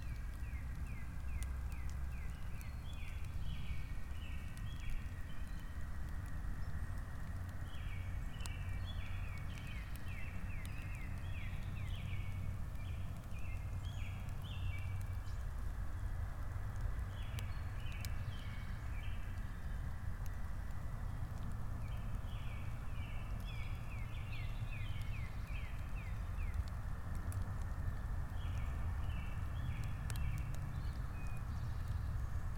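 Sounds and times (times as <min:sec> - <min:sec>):
spring birds chirping: 0:00.0 - 0:16.0, 0:17.0 - 0:27.4, 0:28.0 - 0:32.5.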